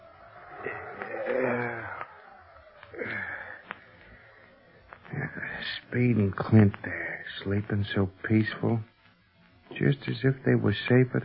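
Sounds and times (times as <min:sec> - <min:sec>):
howling wind: 0:00.0 - 0:04.9
speech: 0:05.8 - 0:08.9, 0:09.8 - 0:11.2.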